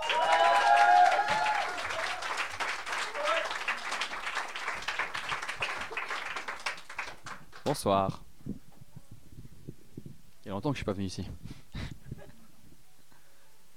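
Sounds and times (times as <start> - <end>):
audience applause: 0.0 - 7.8
speech: 7.7 - 8.2, 10.5 - 11.4.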